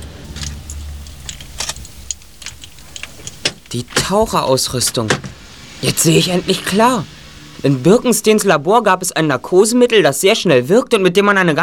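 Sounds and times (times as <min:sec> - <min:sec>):
metallic clicks and rattles: 0:00.0 - 0:04.1
car engine humming: 0:00.0 - 0:10.0
speech: 0:03.7 - 0:11.6.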